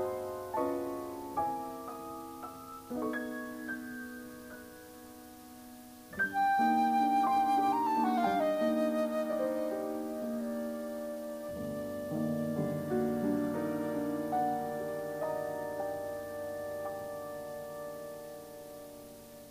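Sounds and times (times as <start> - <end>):
piano: 0.0 - 19.4
flute: 6.1 - 19.4.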